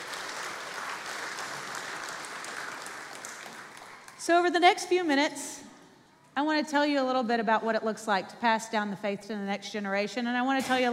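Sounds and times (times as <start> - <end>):
audience clapping: 0.0 - 4.2
speech: 4.2 - 5.7, 6.4 - 10.9.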